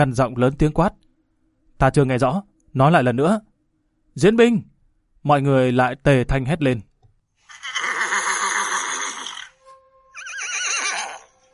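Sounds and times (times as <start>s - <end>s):
speech: 0.0s - 1.0s, 1.8s - 3.5s, 4.2s - 6.9s
black warhorse neighing: 7.5s - 9.6s, 10.2s - 11.4s.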